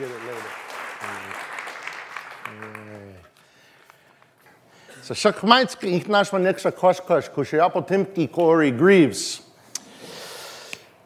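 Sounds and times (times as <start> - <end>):
congregation applause welcoming service speakers: 0.0 - 3.7
speech: 5.1 - 9.4.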